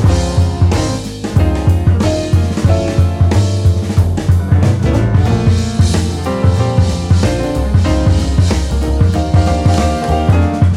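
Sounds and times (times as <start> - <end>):
quartet play-along without trumpet: 0.1 - 10.7.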